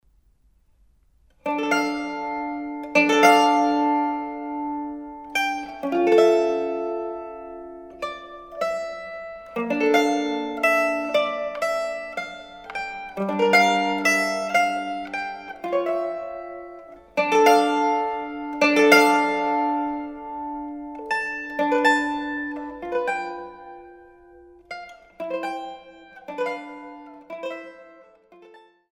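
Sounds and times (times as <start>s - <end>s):
mandolin playing a suite sarabande: 1.2s - 28.9s.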